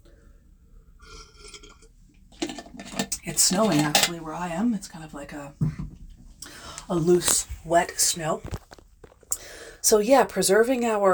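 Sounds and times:
person sipping a drink: 1.0s - 4.0s
speech: 3.2s - 5.8s, 6.9s - 8.6s, 9.8s - 11.1s.

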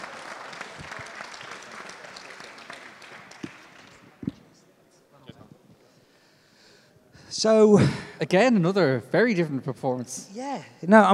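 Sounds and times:
audience applauding: 0.0s - 4.4s
sharp individual claps and thumps: 0.8s - 1.2s, 3.1s - 4.5s
speech: 7.4s - 11.1s.

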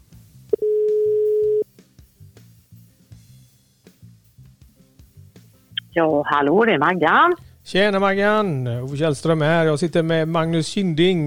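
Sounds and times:
quiet rhythmic music bed: 0.0s - 11.2s
telephone ringing tone while a call is placed: 0.6s - 1.6s
speech: 6.0s - 11.2s.

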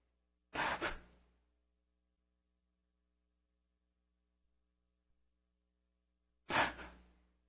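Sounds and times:
man imitating a dying man's very slow breathing: 6.5s - 7.1s.

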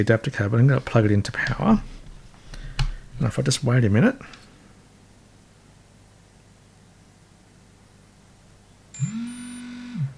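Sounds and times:
speech: 0.0s - 2.0s, 3.2s - 4.4s
device beeps on AC power: 9.0s - 10.0s.

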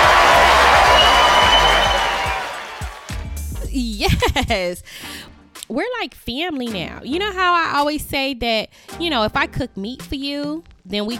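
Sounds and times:
crowd clapping: 0.0s - 3.3s
speech: 4.3s - 11.1s.

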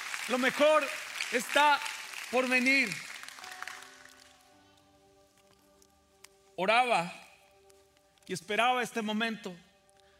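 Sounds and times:
audience applauding: 0.0s - 4.4s
speech: 0.3s - 3.1s, 6.6s - 7.2s, 8.3s - 9.7s.

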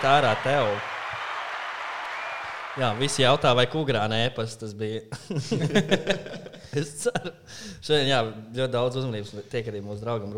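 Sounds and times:
speech: 0.0s - 0.9s, 2.8s - 10.3s
applause: 0.0s - 3.8s
laughter: 5.2s - 7.3s.

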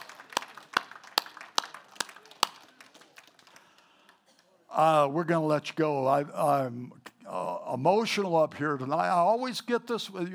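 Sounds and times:
audience clapping: 0.0s - 4.5s
speech: 4.8s - 10.3s.

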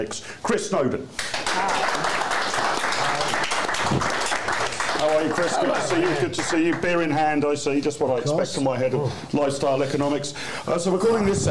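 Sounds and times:
speech: 0.0s - 2.4s, 5.0s - 11.5s
audience applause welcoming a guest onto a show: 1.2s - 7.1s.

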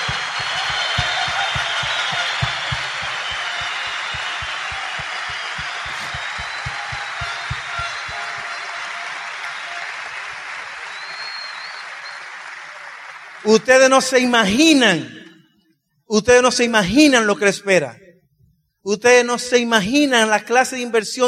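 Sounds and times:
audience applause: 0.0s - 13.9s
speech: 13.5s - 15.2s, 16.2s - 18.0s, 18.8s - 21.2s.

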